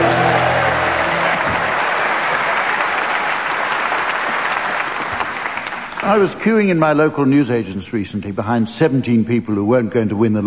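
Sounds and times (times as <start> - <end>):
audience cheering: 0.0 - 6.4
speech: 6.1 - 10.4.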